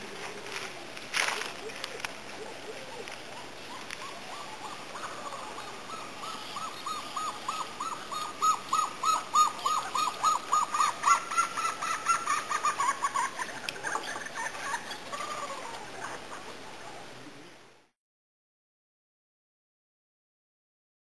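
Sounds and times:
Egyptian plover singing: 1.6s - 17.0s.

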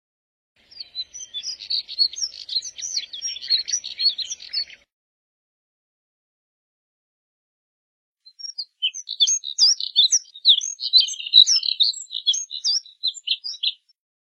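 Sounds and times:
Moussier's redstart twittering warble: 0.6s - 4.8s, 8.3s - 13.9s.

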